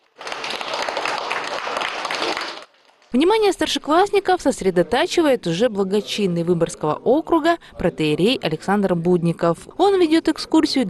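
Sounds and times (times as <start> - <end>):
crowd applauding enthusiastically: 0.0 - 2.8
speech: 3.1 - 10.8.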